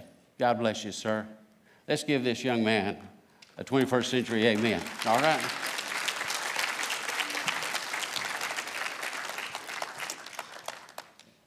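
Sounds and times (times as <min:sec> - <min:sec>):
speech: 0:00.4 - 0:05.7
audience applause: 0:04.2 - 0:11.4.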